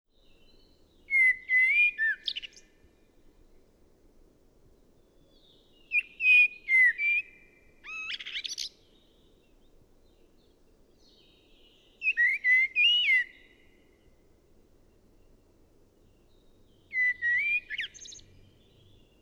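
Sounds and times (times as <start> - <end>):
common blackbird singing: 0.2 - 2.7, 5.3 - 7.3, 11.0 - 13.5, 16.1 - 19.2.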